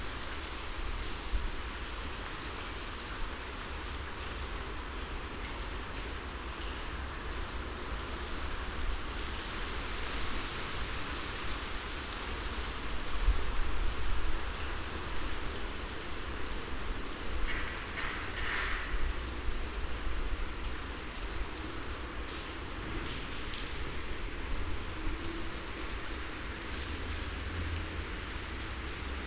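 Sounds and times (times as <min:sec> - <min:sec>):
freezing wind: 0:00.0 - 0:29.2
rain: 0:00.0 - 0:29.2.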